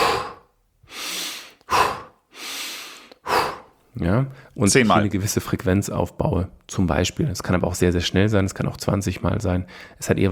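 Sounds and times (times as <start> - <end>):
breathy exhales through the mouth: 0.0 - 3.8
sharper sniffing inhales through the nose: 0.0 - 3.8
speech: 4.0 - 10.2.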